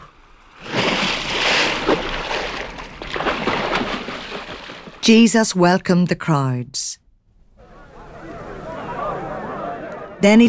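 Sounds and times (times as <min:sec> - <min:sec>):
oars of a rowing boat splashing in water: 0:00.0 - 0:05.2
speech: 0:05.0 - 0:06.9, 0:10.2 - 0:10.4.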